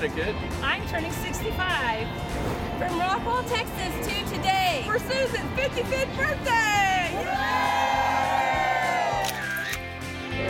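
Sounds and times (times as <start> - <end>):
speech: 0.0 - 8.1
overlapping shouts and high whoops: 6.8 - 9.8
large crowd cheering outdoors: 6.9 - 10.4.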